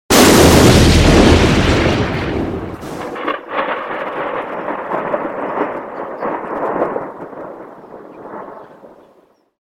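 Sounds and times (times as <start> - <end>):
explosion: 0.1 - 7.1.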